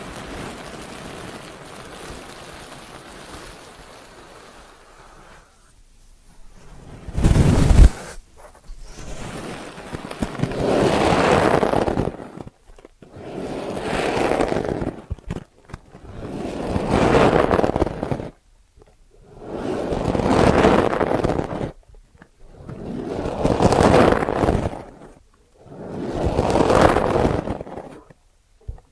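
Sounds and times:
quiet low hiss: 0.0s - 28.9s
soft ear cleaning scrapes and rubs: 6.3s - 18.4s, 19.2s - 28.2s.

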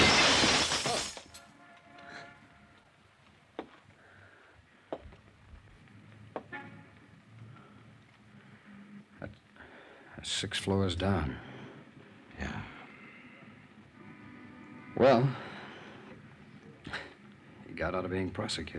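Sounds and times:
falling glass fragments tinkling: 0.0s - 1.4s
window pane shattering: 0.0s - 1.4s
speech: 10.2s - 11.5s, 15.0s - 15.4s, 17.9s - 18.7s.

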